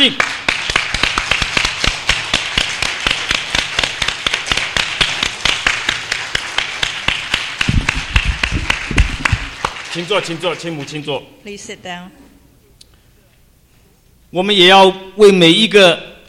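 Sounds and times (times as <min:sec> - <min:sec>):
speech: 0:00.0 - 0:00.3, 0:10.0 - 0:12.2, 0:14.3 - 0:16.2
audience clapping hands: 0:00.0 - 0:10.9.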